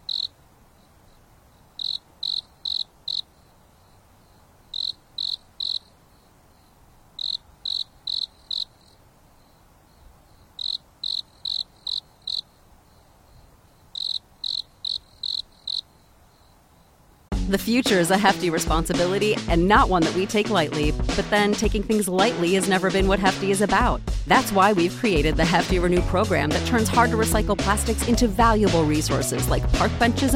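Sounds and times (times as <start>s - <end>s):
insect chirping: 0.0s - 17.3s
speech: 17.5s - 30.3s.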